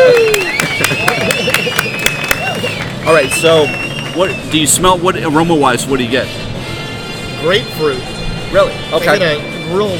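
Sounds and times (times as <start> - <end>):
round of applause: 0.0 - 4.5
speech: 3.2 - 6.4, 7.4 - 9.9.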